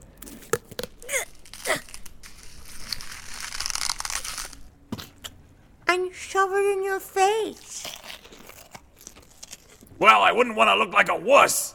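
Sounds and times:
heart being ripped from a Viking's chest: 0.2s - 4.7s, 7.7s - 9.9s
speech: 5.9s - 7.7s, 10.0s - 11.7s.

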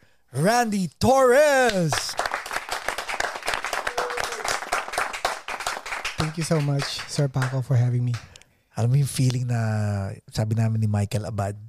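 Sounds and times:
speech: 0.3s - 2.2s, 6.3s - 11.6s
audience applause: 1.9s - 8.3s.

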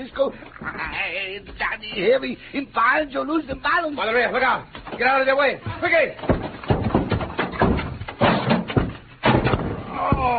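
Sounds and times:
speech: 0.0s - 6.5s
stacked wooden packing cases tumbling down: 4.6s - 10.3s.

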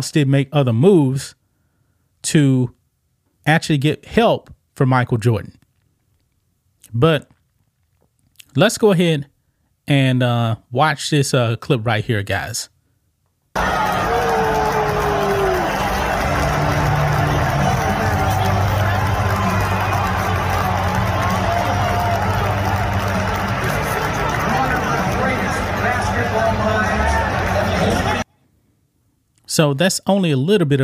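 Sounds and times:
speech: 0.0s - 1.4s, 2.2s - 2.8s, 3.4s - 5.6s, 6.9s - 7.3s, 8.5s - 9.3s, 9.9s - 12.7s, 13.6s - 14.1s, 29.5s - 30.8s
arena crowd booing: 13.6s - 28.2s.

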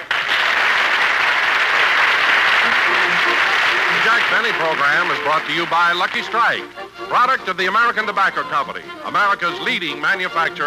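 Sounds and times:
audience applause: 0.0s - 6.6s
speech: 4.4s - 10.6s.

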